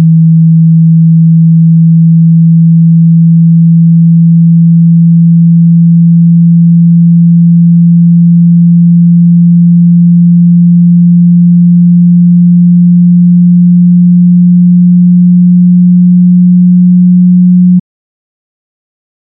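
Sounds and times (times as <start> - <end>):
low tone sweep from 120 Hz to 180 Hz: 0.0 - 17.8.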